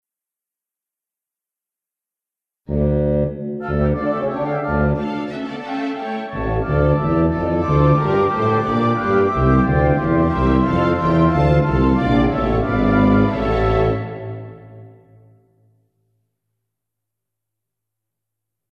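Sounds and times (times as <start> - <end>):
instrumental music: 2.7 - 15.4.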